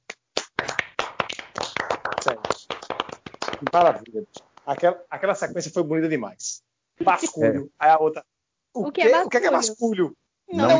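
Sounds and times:
short round of hand clapping from a few people: 0.0 - 4.9
speech: 3.6 - 10.7.

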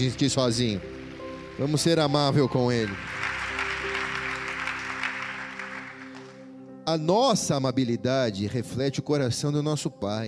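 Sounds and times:
speech: 0.0 - 1.0, 1.6 - 3.2, 6.9 - 10.2
audience applause: 1.2 - 6.5.

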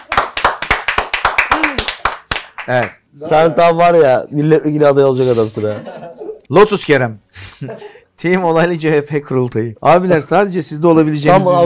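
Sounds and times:
hand claps in honour of women on a Turkish talk show: 0.0 - 3.0
speech: 2.6 - 11.6.

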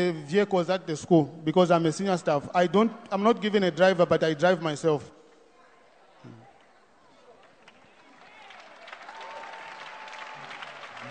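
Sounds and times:
speech: 0.0 - 5.2
audience clapping: 7.4 - 11.0.

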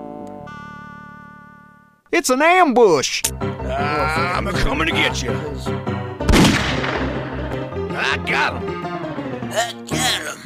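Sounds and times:
speech: 2.1 - 6.5, 8.0 - 8.8, 9.5 - 10.4
gunshots in the video game Grizzly Gulch: 6.3 - 7.2.

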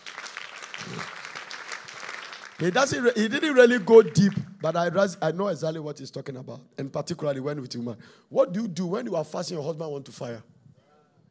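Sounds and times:
audience clapping: 0.0 - 5.0
speech: 2.6 - 10.5.

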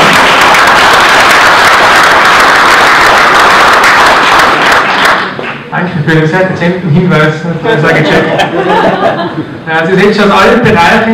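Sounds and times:
audience applause: 0.0 - 5.7
speech: 6.1 - 11.1
laughter: 7.6 - 9.6.

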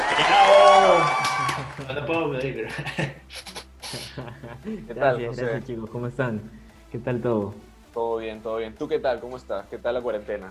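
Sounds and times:
applause and cheering: 0.0 - 2.5
laughter: 0.0 - 5.0
speech: 1.9 - 10.4.

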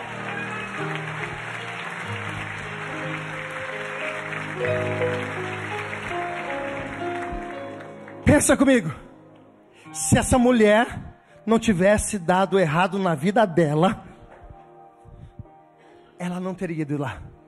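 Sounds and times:
audience applause: 0.0 - 8.6
speech: 8.4 - 9.1, 10.0 - 14.0, 16.2 - 17.3.

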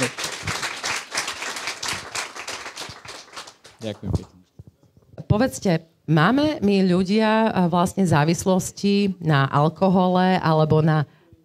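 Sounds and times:
audience applause for a guest at a Slovak talk event: 0.0 - 4.3
speech: 3.8 - 4.4, 5.3 - 11.2.

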